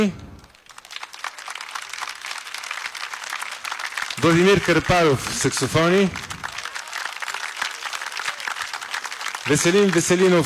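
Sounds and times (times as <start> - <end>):
speech: 0.0 - 0.2, 4.2 - 6.3, 9.5 - 10.4
audience applause: 0.0 - 10.4.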